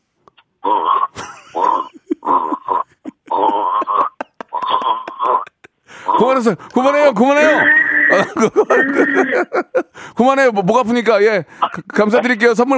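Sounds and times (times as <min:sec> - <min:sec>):
person imitating a bullfrog with deep throaty grunting croaks: 0:00.6 - 0:06.4, 0:07.4 - 0:09.3
laughter: 0:01.2 - 0:06.4, 0:07.4 - 0:10.0
speech: 0:06.2 - 0:12.7.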